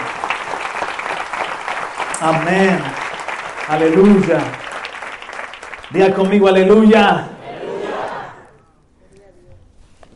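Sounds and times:
audience applause: 0.0s - 6.8s
speech: 2.2s - 3.0s, 3.7s - 4.6s, 5.9s - 7.4s.

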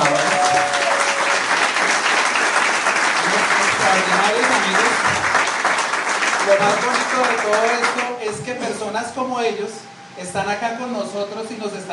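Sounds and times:
faint voices and cheers: 0.0s - 1.5s
audience applause: 0.0s - 8.2s
speech: 6.5s - 11.9s.

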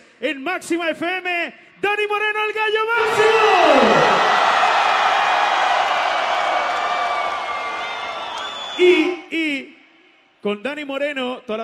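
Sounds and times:
speech: 0.2s - 4.3s, 8.8s - 9.6s, 10.4s - 11.6s
crowd shouting and cheering: 2.9s - 9.2s.

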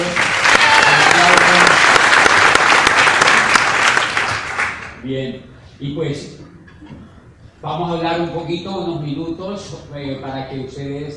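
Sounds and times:
audience applause: 0.0s - 5.0s
speech: 5.1s - 6.4s, 7.6s - 11.1s.

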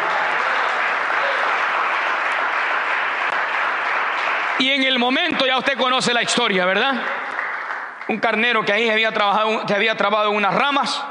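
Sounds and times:
audience clapping hands: 0.0s - 8.8s
speech: 4.6s - 7.2s, 8.1s - 11.0s.

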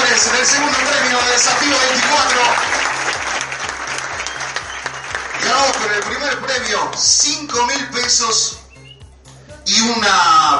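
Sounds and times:
audience applause: 0.0s - 7.2s
speech: 0.4s - 2.7s, 5.8s - 8.6s, 9.7s - 10.5s.

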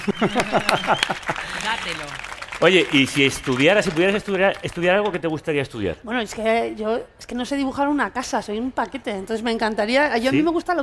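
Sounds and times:
laughter: 0.0s - 1.6s
audience applause: 0.0s - 5.2s
speech: 0.1s - 10.8s.

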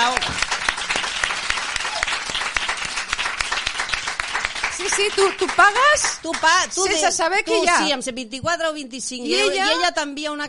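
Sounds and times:
crowd applauding: 0.0s - 7.1s
speech: 5.0s - 10.4s.

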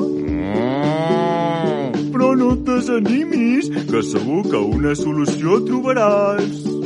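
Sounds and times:
cow mooing: 0.2s - 2.1s
speech: 2.9s - 6.7s.

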